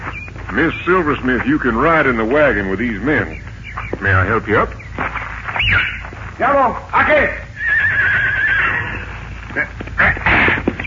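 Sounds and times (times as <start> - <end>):
speech: 0.5 - 5.8, 6.4 - 7.4
horse neighing: 7.5 - 10.7.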